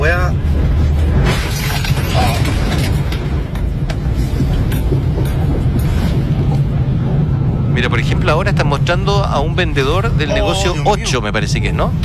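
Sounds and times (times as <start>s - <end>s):
mudslide thundering downhill: 0.0s - 12.0s
speech: 7.8s - 12.0s.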